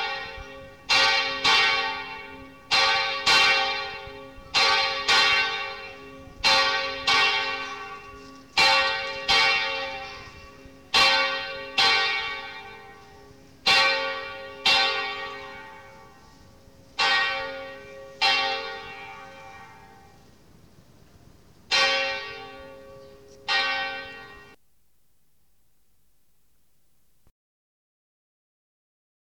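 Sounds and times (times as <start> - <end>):
church bells ringing for an anniversary: 0.0 - 20.4, 21.7 - 24.6.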